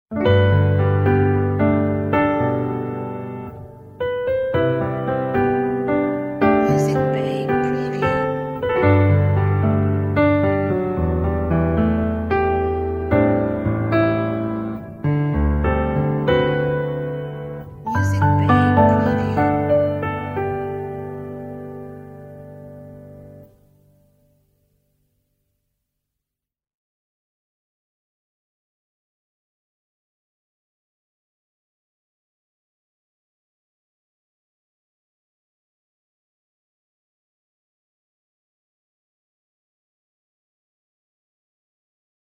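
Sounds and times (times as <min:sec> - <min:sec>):
piano logo jingle: 0:00.1 - 0:24.4.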